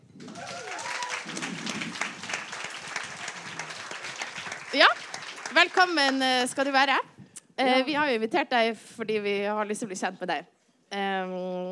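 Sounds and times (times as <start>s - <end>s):
audience applauding: 0.0s - 6.8s
speech: 4.7s - 5.0s, 5.6s - 11.7s.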